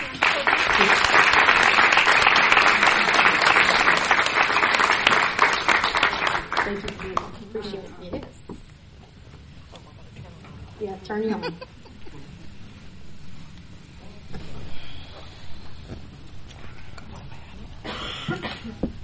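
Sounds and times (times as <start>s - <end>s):
audience applauding a guest: 0.0s - 7.4s
laughter: 0.3s - 1.8s, 11.2s - 12.8s.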